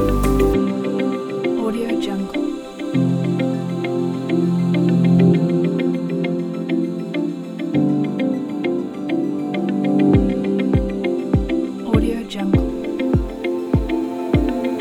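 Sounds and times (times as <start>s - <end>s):
ambient corporate music: 0.0s - 14.8s.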